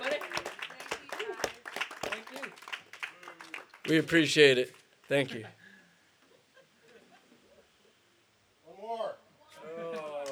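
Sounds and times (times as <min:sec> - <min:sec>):
crowd round of applause: 0:00.0 - 0:05.2
speech: 0:03.9 - 0:05.6.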